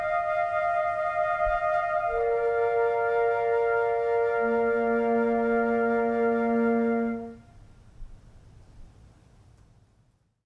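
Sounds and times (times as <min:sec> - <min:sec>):
nature flute music: 0:00.0 - 0:07.5.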